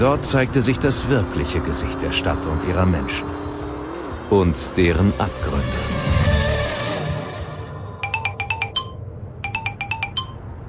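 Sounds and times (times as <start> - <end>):
speech: 0.0 - 3.4, 4.3 - 6.1
telephone ringing: 8.0 - 10.5.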